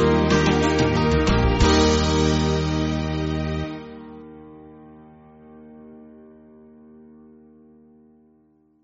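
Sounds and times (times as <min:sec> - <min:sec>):
band playing: 0:00.0 - 0:04.1.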